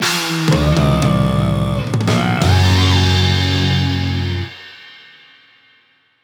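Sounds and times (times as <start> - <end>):
battle defeat jingle: 0.6 - 4.5.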